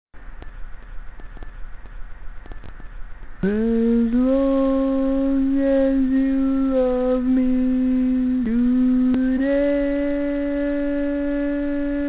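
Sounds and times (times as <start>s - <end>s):
barbershop lead singing: 3.4s - 12.0s.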